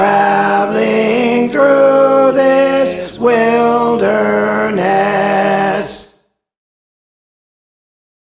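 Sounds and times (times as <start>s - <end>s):
tenor singing: 0.0s - 6.2s.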